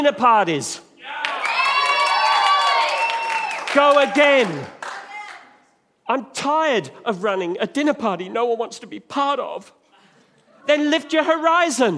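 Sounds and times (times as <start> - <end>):
speech: 0.0 - 1.3, 3.7 - 4.8, 6.1 - 9.8, 10.6 - 11.9
audience clapping: 1.1 - 5.5.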